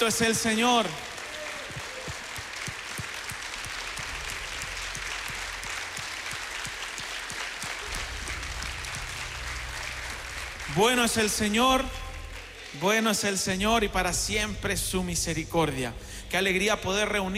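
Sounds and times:
speech: 0:00.0 - 0:01.1, 0:10.8 - 0:12.0, 0:12.7 - 0:17.3
audience applause: 0:00.0 - 0:13.9.

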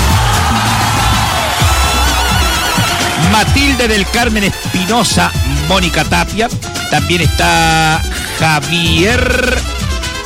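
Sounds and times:
audience applause: 0:00.0 - 0:04.4
audience cheering: 0:00.0 - 0:06.0
speech: 0:03.4 - 0:09.8.

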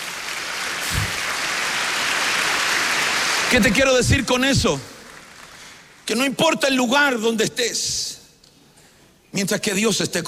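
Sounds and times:
audience applauding: 0:00.0 - 0:06.0
speech: 0:03.5 - 0:04.9, 0:06.1 - 0:08.2, 0:09.3 - 0:10.2.

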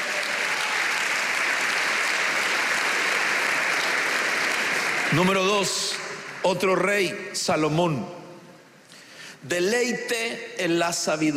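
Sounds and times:
audience applauding: 0:00.0 - 0:06.8
speech: 0:05.1 - 0:08.2, 0:09.4 - 0:11.3.

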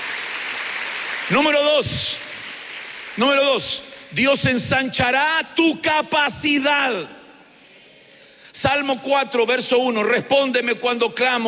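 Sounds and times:
audience clapping hands: 0:00.0 - 0:04.2
speech: 0:01.3 - 0:02.2, 0:03.2 - 0:07.2, 0:08.6 - 0:11.4.

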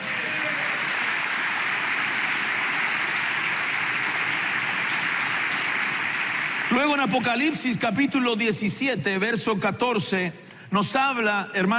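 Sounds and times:
audience applause: 0:00.0 - 0:07.8
speech: 0:06.7 - 0:11.7.

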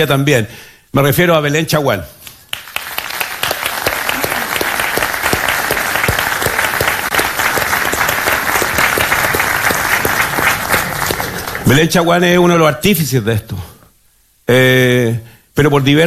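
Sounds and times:
speech: 0:00.0 - 0:02.2, 0:11.7 - 0:13.7, 0:14.5 - 0:16.0
audience applause: 0:02.5 - 0:12.1.

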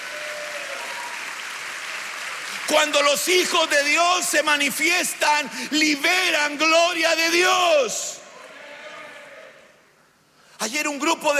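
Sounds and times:
audience clapping: 0:00.0 - 0:07.0
speech: 0:02.7 - 0:08.2, 0:10.6 - 0:11.3.

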